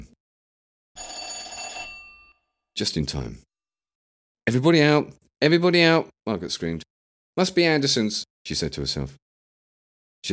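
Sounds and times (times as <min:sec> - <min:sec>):
shop bell ringing: 0:01.0 - 0:02.4
speech: 0:02.8 - 0:03.5, 0:04.5 - 0:09.2.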